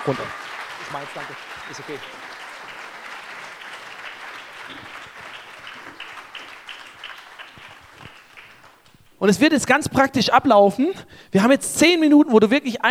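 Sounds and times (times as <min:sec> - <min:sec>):
speech: 0:00.0 - 0:02.4, 0:04.7 - 0:05.0, 0:09.2 - 0:12.8
audience applause: 0:00.0 - 0:09.2.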